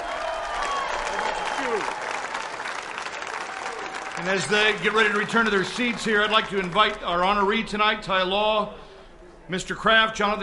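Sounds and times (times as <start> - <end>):
audience applause: 0.0 - 7.6
speech: 1.7 - 2.0, 4.2 - 8.9, 9.5 - 10.4.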